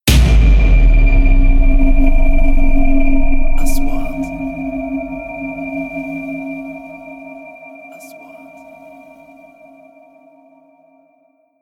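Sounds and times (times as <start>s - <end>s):
3D trailer sound effects: 0.1s - 7.5s.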